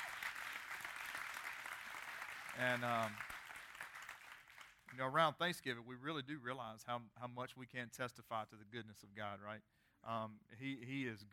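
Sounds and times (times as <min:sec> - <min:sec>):
church congregation applauding: 0:00.0 - 0:05.0
speech: 0:02.6 - 0:03.3, 0:04.9 - 0:11.3.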